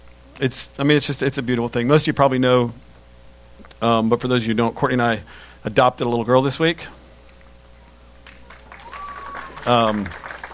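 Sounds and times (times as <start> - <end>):
speech: 0.4 - 2.8, 3.8 - 7.0, 9.6 - 10.3
audience clapping: 8.2 - 10.5
person cheering: 8.4 - 10.3
rising whistle: 8.7 - 9.7.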